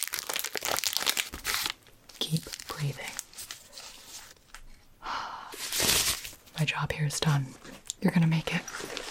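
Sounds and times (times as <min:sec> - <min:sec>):
bandage wrapper crinkling: 0:00.0 - 0:04.6, 0:05.6 - 0:06.4, 0:08.7 - 0:09.0
speech: 0:02.2 - 0:03.1, 0:06.6 - 0:09.0.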